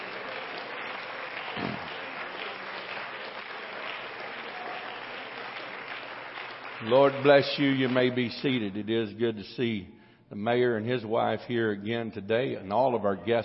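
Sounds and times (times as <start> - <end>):
large audience clapping in praise: 0.0 - 8.8
speech: 6.8 - 13.4.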